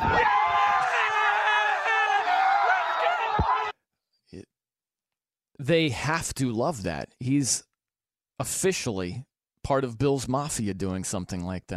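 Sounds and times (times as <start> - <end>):
rowdy football crowd cheering and yelling: 0.0 - 3.8
speech: 5.6 - 7.7, 8.4 - 11.7.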